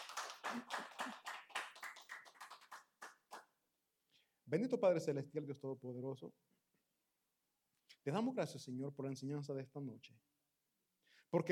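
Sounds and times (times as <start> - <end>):
audience applauding: 0.0 - 3.4
speech: 0.5 - 1.2, 4.5 - 6.5, 8.0 - 10.3, 11.3 - 11.5.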